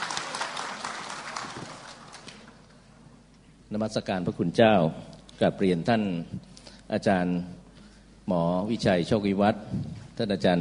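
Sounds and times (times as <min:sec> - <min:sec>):
audience applause welcoming speaker: 0:00.0 - 0:02.6
speech: 0:03.7 - 0:07.6, 0:08.3 - 0:10.6.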